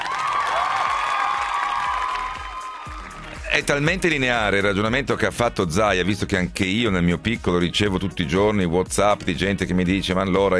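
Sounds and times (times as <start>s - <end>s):
applause: 0.0s - 3.6s
speech: 3.6s - 10.5s.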